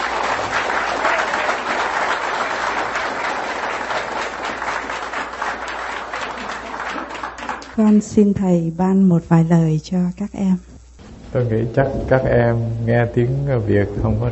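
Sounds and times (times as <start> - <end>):
audience applause: 0.0 - 8.0
speech: 7.8 - 10.7, 11.3 - 14.3.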